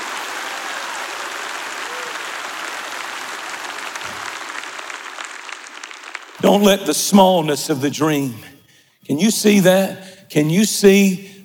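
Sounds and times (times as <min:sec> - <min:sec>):
large group clapping hands: 0:00.0 - 0:06.9
speech: 0:06.4 - 0:08.5, 0:09.1 - 0:11.3.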